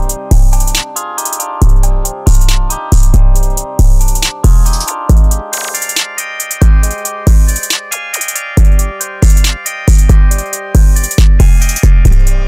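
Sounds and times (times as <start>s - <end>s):
hard dark trap rap instrumental beat: 0.0s - 12.4s.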